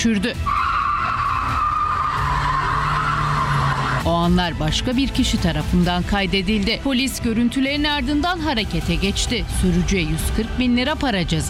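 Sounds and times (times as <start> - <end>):
speech: 0.0 - 0.6, 4.1 - 11.4
car drifting with skidding tires: 0.4 - 4.1.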